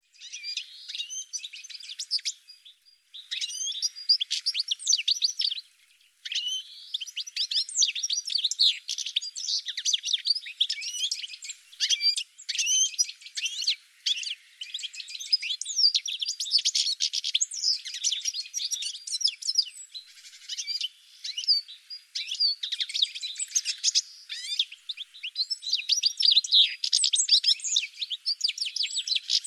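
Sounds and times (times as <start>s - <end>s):
birds twittering with high chirps and sweeping notes: 0.0s - 29.4s.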